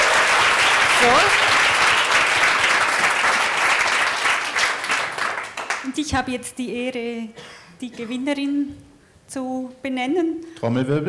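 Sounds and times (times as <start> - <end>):
audience applause for nominees: 0.0 - 6.0
speech: 1.0 - 1.4, 6.0 - 11.0.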